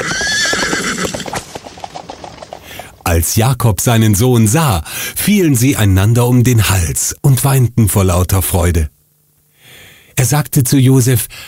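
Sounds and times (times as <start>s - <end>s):
horse whinnying: 0.0s - 2.9s
hooves clip-clopping: 0.0s - 3.4s
speech: 3.2s - 9.0s, 10.2s - 11.4s.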